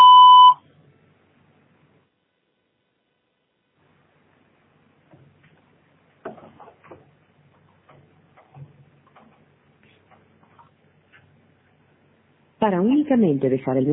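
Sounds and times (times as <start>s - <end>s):
voicemail recording tone beep: 0.0s - 0.6s
speech: 12.6s - 13.9s.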